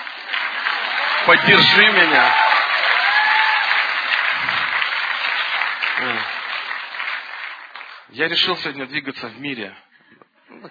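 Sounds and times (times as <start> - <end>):
audience applause: 0.0 - 8.4
speech: 1.2 - 2.5, 8.2 - 9.8.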